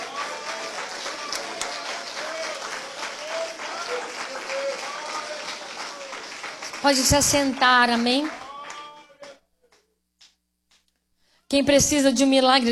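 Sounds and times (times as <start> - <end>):
audience clapping hands for Jesus: 0.0 - 10.9, 12.4 - 12.7
speech: 6.8 - 8.4, 11.5 - 12.7.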